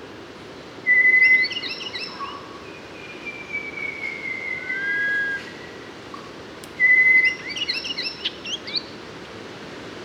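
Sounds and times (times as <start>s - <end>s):
Mangrove robin singing long whistled notes in Papua New Guinea: 0.8s - 5.9s, 6.8s - 8.9s.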